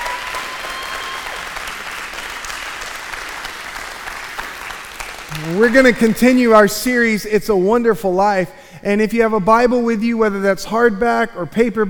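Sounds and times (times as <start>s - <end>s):
church congregation applauding to welcome first-time visitors: 0.0s - 6.3s
speech: 5.3s - 11.8s.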